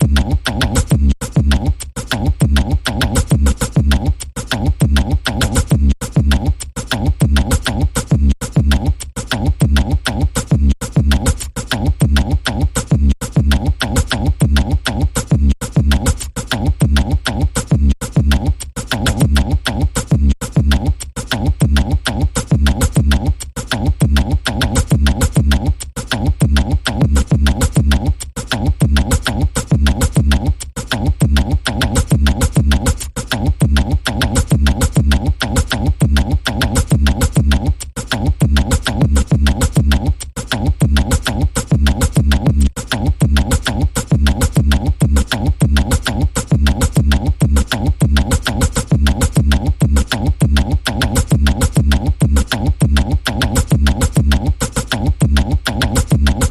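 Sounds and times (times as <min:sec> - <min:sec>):
rhythmic percussion variation: 0:00.0 - 0:56.4.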